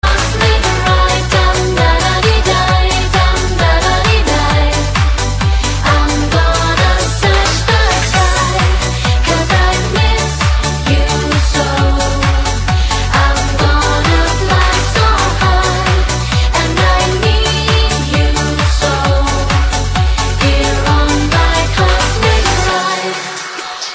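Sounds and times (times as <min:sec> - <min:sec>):
dance music: 0:00.0 - 0:23.9
woman singing: 0:00.0 - 0:23.9.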